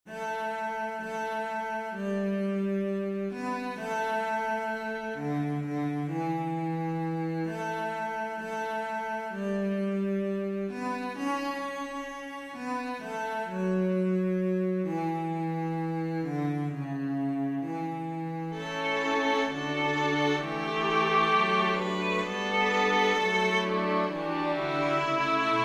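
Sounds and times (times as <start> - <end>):
string quartet: 0.0 - 25.6.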